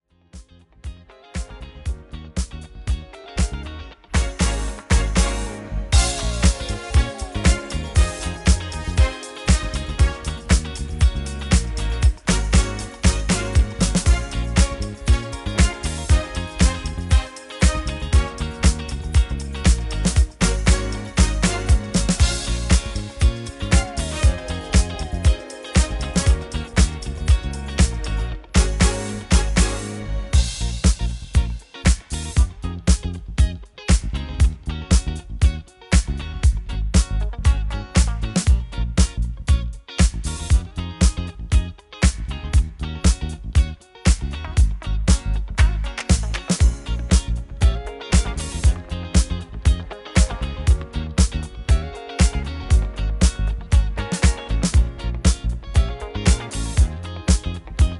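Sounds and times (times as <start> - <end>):
disco instrumental music: 0.3 - 57.9.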